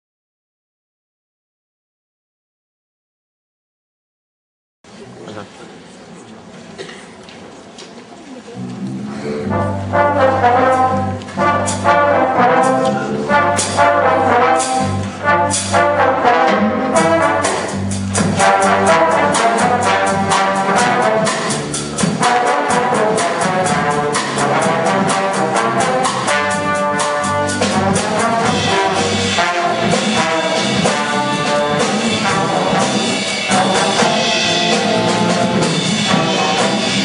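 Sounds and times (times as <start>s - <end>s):
trombone: 9.1s - 37.0s.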